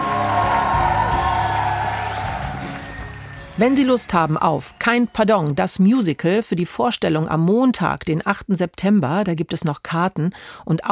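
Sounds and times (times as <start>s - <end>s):
theatre audience applause in Stadttheater Wilhelmshaven: 0.0s - 5.6s
speech: 3.6s - 10.9s.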